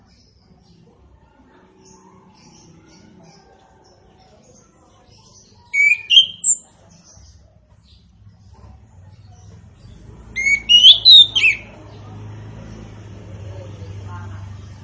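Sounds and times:
orange-headed thrush singing warbled whistles: 5.7 - 6.6, 10.4 - 11.8.

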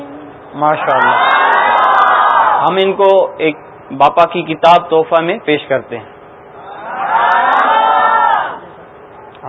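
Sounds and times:
speech: 0.6 - 1.3, 2.6 - 6.1
Jamia-tul-Madina students cheering joyfully: 0.7 - 2.8, 6.6 - 8.8.

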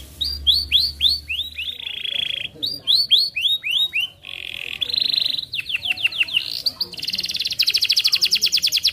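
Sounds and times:
Atlantic canary singing: 0.0 - 8.9.

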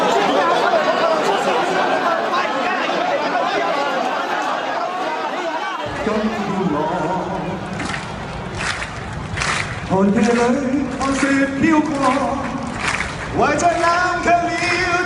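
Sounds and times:
raised drawn-out voices calling out: 0.0 - 10.1
dense crowd chatter on a busy Hong Kong street during protests: 0.0 - 15.0.

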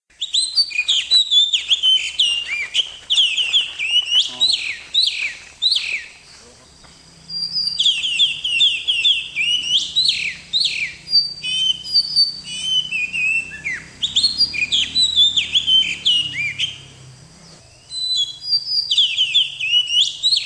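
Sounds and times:
Oriental magpie-robin singing: 0.1 - 20.4.

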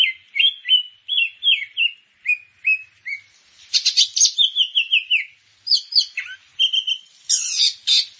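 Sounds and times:
grey-cheeked bulbul singing chattery whistles and high twitters: 0.0 - 8.1.

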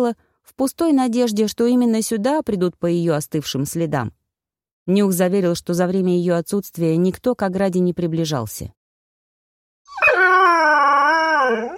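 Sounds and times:
speech: 0.0 - 4.2, 4.8 - 8.8
animal howling: 9.9 - 11.7.

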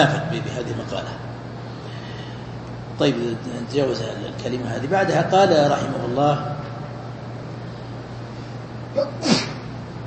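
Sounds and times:
speech: 0.0 - 1.3, 3.0 - 6.7
person sneezing: 9.0 - 9.7.

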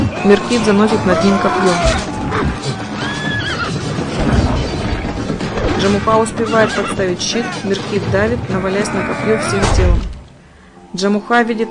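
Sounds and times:
horse whinnying as it is brought down in a film battle scene: 0.0 - 10.0
speech: 0.2 - 2.6, 5.8 - 10.1, 10.9 - 11.6.

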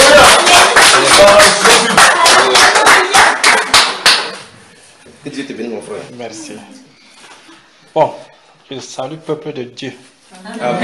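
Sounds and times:
crowd clapping: 0.0 - 4.5
speech: 8.7 - 10.8.

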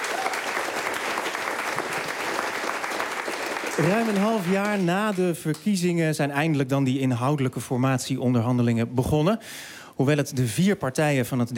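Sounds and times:
applause: 0.0 - 5.8
speech: 3.8 - 11.5.

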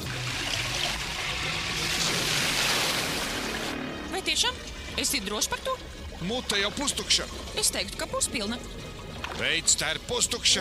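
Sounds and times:
water falling and trickling: 0.0 - 10.6
speech: 4.3 - 10.6.

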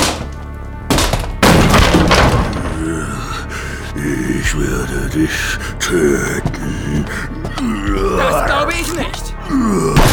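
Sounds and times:
cabin door kicked open: 0.9 - 2.8
speech: 4.0 - 10.1.

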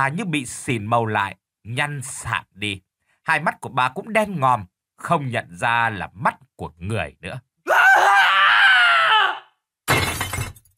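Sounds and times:
speech: 0.0 - 7.5
man screaming in terror: 7.6 - 9.6.

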